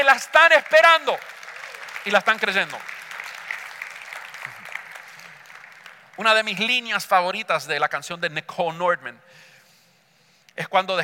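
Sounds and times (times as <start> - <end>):
audience applause: 0.0 - 6.6
speech: 0.1 - 1.4, 2.0 - 3.0, 6.2 - 9.5, 10.6 - 11.0.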